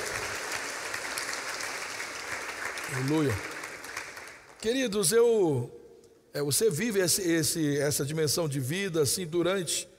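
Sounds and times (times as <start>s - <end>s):
audience applause: 0.0s - 4.6s
speech: 2.9s - 3.5s, 4.6s - 9.9s.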